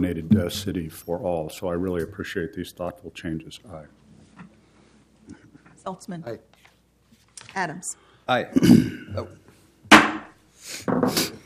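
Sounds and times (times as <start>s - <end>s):
speech: 0.0s - 4.0s, 5.8s - 6.6s, 7.6s - 9.4s, 10.7s - 11.4s
historic gavel striking and breaking: 9.9s - 10.3s.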